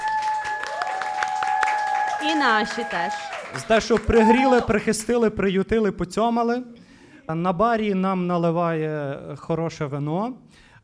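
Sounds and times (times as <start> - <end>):
audience clapping for a house of culture: 0.0 - 5.2
speech: 2.2 - 10.8.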